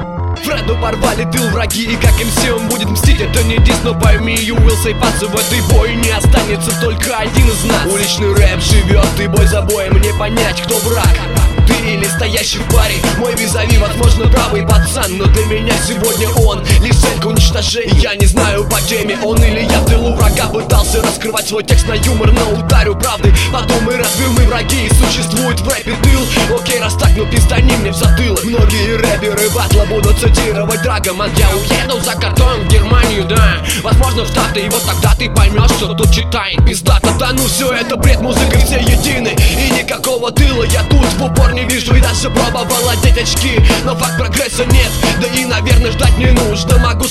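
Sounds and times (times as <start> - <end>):
street rap battle: 0.4 - 47.0.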